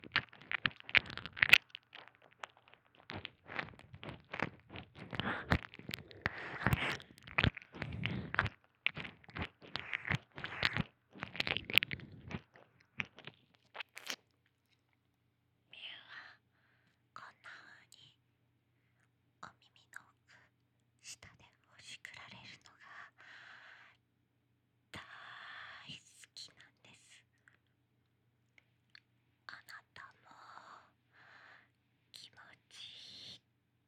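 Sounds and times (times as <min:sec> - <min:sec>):
ear licking sounds: 0:00.0 - 0:14.2.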